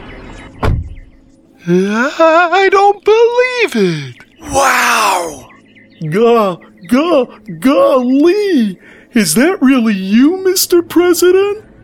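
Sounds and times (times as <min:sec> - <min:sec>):
car door thump as boys climb into a car: 0:00.6 - 0:01.1
speech: 0:01.6 - 0:11.6.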